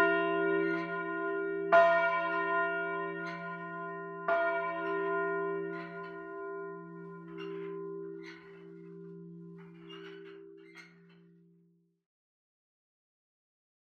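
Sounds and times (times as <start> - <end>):
low-pitched church bell: 0.0 - 11.5.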